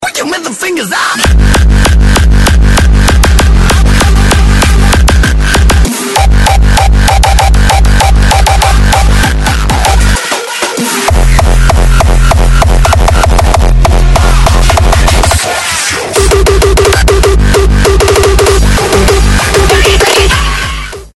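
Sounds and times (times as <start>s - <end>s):
frenchcore music: 1.2s - 21.1s.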